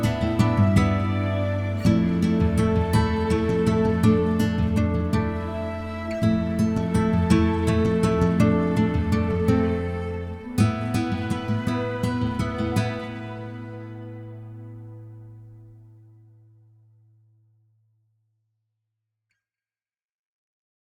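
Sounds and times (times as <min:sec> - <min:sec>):
guitar arpeggio: 0:00.0 - 0:16.4.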